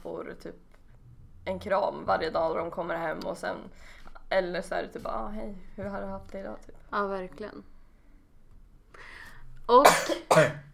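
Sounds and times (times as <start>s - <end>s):
speech: 0.1s - 0.8s, 1.4s - 7.7s, 9.7s - 10.7s
sneeze: 9.9s - 10.7s.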